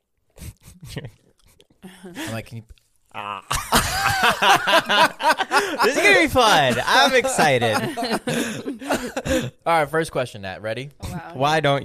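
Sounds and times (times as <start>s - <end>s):
person spitting out chewing gum: 0.3s - 2.4s, 3.1s - 3.6s
speech: 1.0s - 1.2s, 1.8s - 11.8s
laughter: 3.2s - 9.6s.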